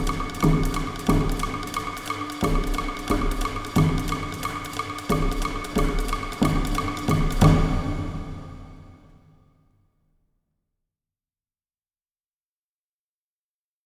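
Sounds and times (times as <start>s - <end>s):
cannibal party drums: 0.0s - 8.9s.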